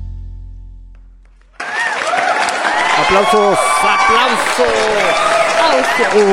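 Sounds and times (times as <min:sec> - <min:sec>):
applause: 0:01.3 - 0:06.3
speech: 0:06.0 - 0:06.3.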